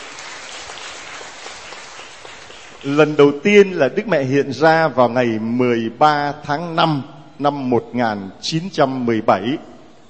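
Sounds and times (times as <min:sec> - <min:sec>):
congregation clapping at a Catholic gathering: 0:00.0 - 0:03.8
speech: 0:02.8 - 0:09.7.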